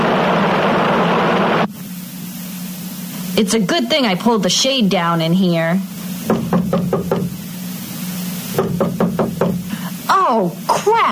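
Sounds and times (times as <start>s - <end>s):
low room hum: 0.0s - 11.1s
speech: 3.4s - 6.5s, 10.3s - 11.1s
knocking on a door: 6.3s - 7.4s, 8.6s - 9.7s.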